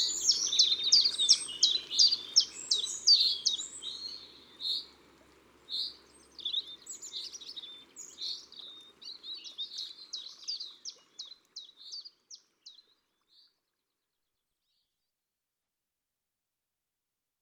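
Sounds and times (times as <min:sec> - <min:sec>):
common chiffchaff singing in Ardeche: 0:00.0 - 0:04.9, 0:05.8 - 0:13.0.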